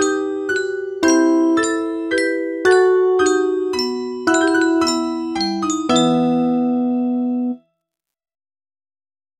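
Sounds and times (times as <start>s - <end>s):
music box: 0.0s - 6.5s.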